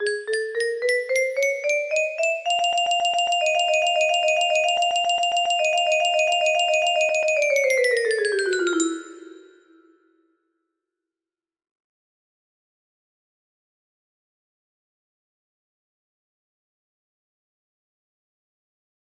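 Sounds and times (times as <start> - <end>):
music box waltz melody: 0.0 - 9.9.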